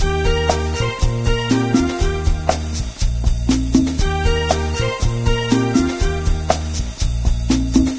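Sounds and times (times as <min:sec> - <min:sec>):
cafe music: 0:00.0 - 0:07.9.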